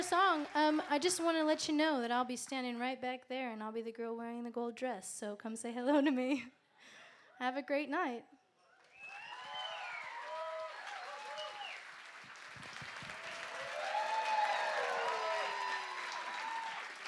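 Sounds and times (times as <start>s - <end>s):
speech: 0.0s - 8.4s
audience applause and cheering after live set: 8.8s - 17.0s.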